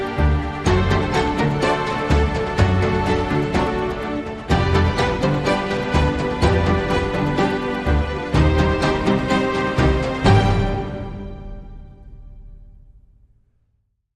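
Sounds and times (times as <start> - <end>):
classical tango: 0.0 - 11.2.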